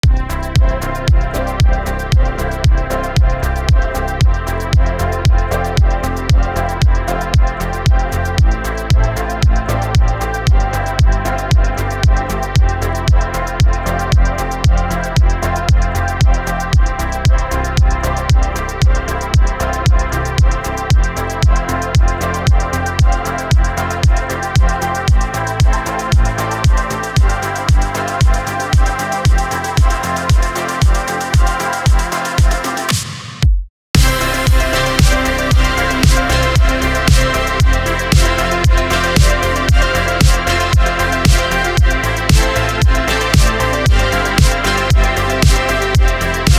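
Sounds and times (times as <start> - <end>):
synthpop music: 0.0 - 33.4, 34.0 - 46.5.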